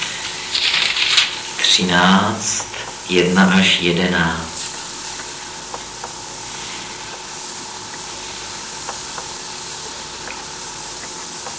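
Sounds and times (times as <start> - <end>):
Bible pages rustling as someone leafs through: 0.0 - 1.8
speech: 1.8 - 4.5.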